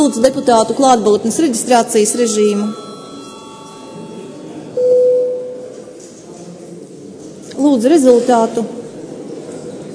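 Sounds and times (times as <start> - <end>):
speech: 0.0 - 2.9, 7.7 - 8.8
parliament session electronic bell tone: 0.6 - 5.9.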